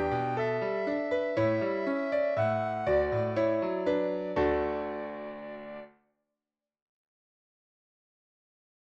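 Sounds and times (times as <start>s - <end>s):
soprano singing: 0.0s - 5.9s.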